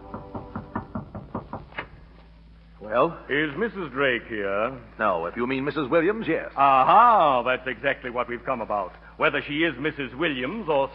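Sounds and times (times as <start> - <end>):
knocking on a hotel suite door: 0.0 - 1.9
speech: 2.9 - 10.9.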